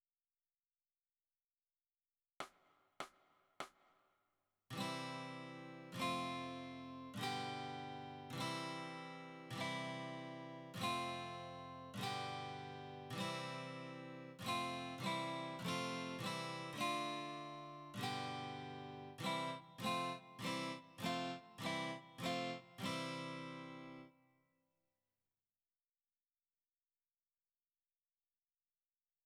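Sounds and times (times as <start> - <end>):
guitar: 4.7 - 24.3.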